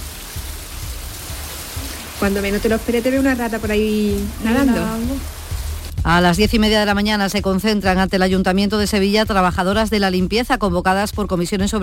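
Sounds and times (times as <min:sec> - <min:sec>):
heavy rain: 0:00.0 - 0:06.0
speech: 0:02.2 - 0:05.4, 0:06.0 - 0:11.8.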